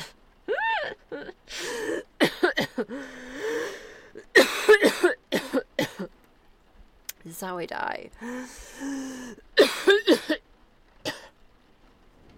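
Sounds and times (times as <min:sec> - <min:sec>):
speech: 0:01.1 - 0:02.1, 0:07.4 - 0:10.3
person coughing after swallowing the wrong way: 0:02.2 - 0:02.9, 0:04.4 - 0:06.1, 0:09.6 - 0:10.4
gasping breaths: 0:02.9 - 0:04.2, 0:08.2 - 0:09.4.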